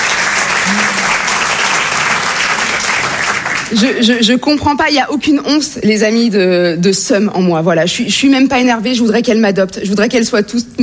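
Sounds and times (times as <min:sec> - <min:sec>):
audience applause: 0:00.0 - 0:03.8
speech: 0:03.7 - 0:10.8.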